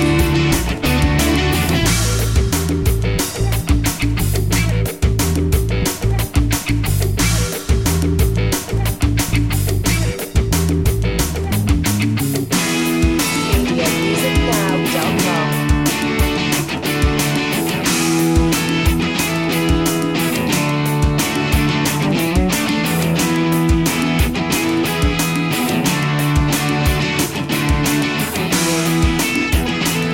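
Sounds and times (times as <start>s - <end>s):
on-hold music: 0.0s - 30.1s.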